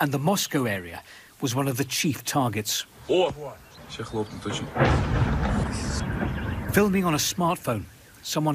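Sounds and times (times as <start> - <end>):
speech: 0.0 - 8.5
drone strike explosion on a block of flats: 3.9 - 7.4.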